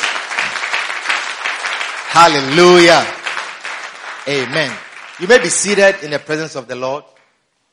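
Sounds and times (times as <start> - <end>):
audience clapping: 0.0 - 7.4
speech: 2.1 - 3.2, 4.2 - 7.1.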